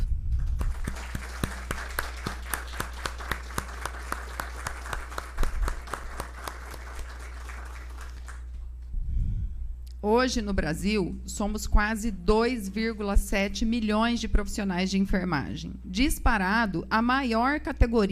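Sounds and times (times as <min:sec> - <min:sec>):
audience applause: 0:00.4 - 0:08.5
speech: 0:10.1 - 0:18.0.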